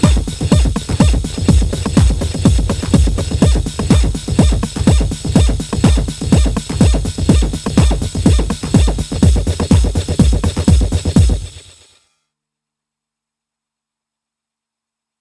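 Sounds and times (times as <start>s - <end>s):
TR-909 drum machine: 0.0s - 11.8s.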